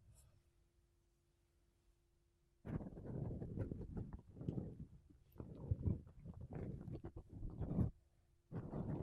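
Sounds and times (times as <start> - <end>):
makeup brushes and a sponge rubbing against the microphone: 2.7 - 8.0, 8.5 - 9.0.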